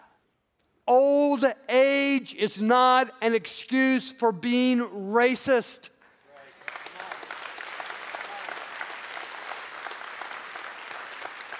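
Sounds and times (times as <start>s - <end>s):
speech: 0.9s - 6.0s
audience applause: 6.3s - 11.5s.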